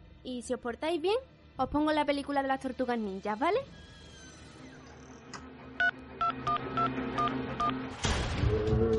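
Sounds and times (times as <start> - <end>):
speech: 0.2 - 4.0, 7.7 - 8.9
phone number dialed as short beeping tones: 5.8 - 7.7.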